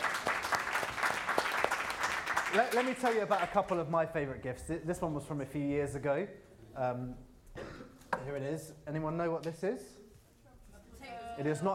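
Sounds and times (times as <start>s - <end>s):
audience applause for nurses working on Christmas Day: 0.0s - 3.8s
speech: 2.5s - 7.3s, 8.2s - 10.0s, 11.4s - 11.7s.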